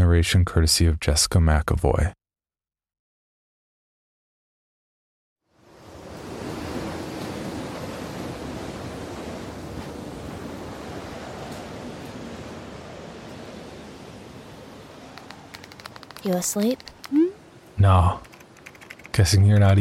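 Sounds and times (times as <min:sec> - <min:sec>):
speech: 0:00.1 - 0:02.2, 0:16.2 - 0:18.3, 0:19.2 - 0:19.7
howling wind: 0:05.5 - 0:19.7.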